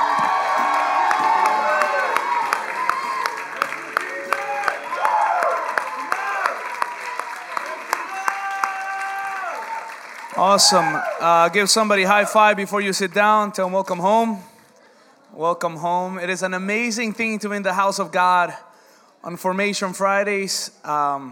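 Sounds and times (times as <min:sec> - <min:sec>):
audience cheering with whoops and shouting voices: 0:00.0 - 0:12.6
audience round of applause: 0:00.0 - 0:12.6
speech: 0:10.4 - 0:14.5, 0:15.4 - 0:21.2.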